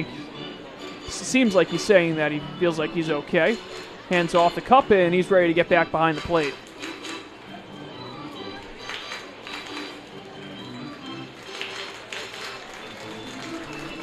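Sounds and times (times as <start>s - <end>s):
speech: 1.1s - 6.6s
baseball crowd applauding the home plate umpire: 11.2s - 14.0s.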